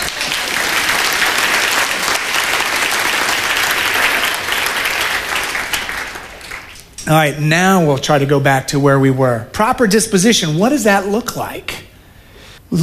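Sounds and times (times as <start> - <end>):
audience applause: 0.0 - 7.0
speech: 7.1 - 11.8.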